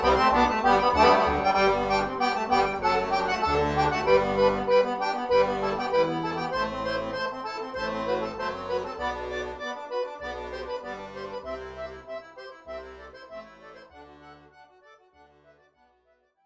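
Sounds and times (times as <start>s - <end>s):
concerto in G major: 0.0s - 12.0s.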